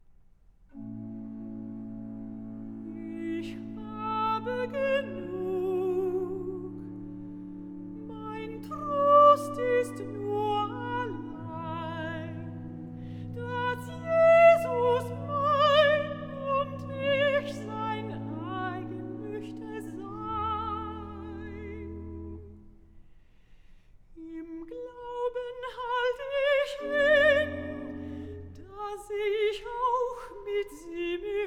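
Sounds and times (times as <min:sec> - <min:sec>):
cantata recitative singing: 0:02.5 - 0:07.2, 0:07.9 - 0:22.6, 0:24.2 - 0:31.4.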